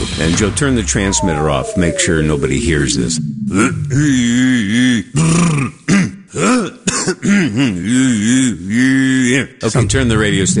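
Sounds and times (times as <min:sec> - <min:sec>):
speech: 0:00.2 - 0:05.8, 0:07.3 - 0:08.0, 0:09.4 - 0:10.5
person clearing throat: 0:03.6 - 0:08.6.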